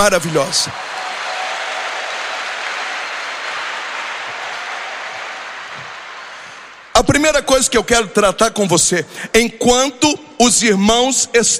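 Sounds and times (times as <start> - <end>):
speech: 0.0 - 0.9, 7.0 - 11.5
crowd applauding: 0.0 - 7.0.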